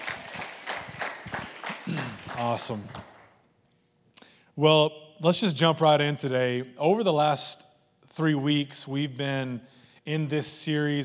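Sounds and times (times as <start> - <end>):
audience clapping hands: 0.0 - 3.5
speech: 1.9 - 3.0, 4.6 - 11.0.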